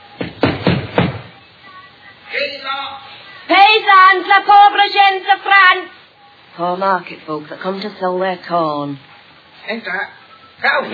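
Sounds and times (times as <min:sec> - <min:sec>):
knocking on a door: 0:00.2 - 0:01.3
speech: 0:03.8 - 0:06.0, 0:06.6 - 0:10.9.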